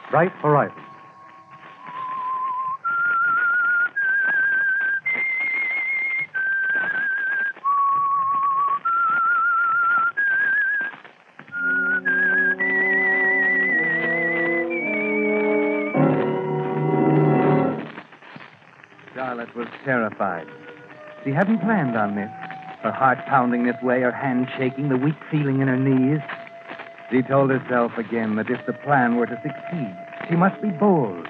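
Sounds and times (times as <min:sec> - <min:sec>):
speech: 0:00.1 - 0:00.8, 0:19.8 - 0:20.6, 0:21.2 - 0:26.3, 0:27.1 - 0:31.2
lone whistler whistling an eerie slow melody: 0:01.8 - 0:10.9, 0:11.5 - 0:16.4, 0:21.2 - 0:31.2
full orchestral chords: 0:11.6 - 0:17.9.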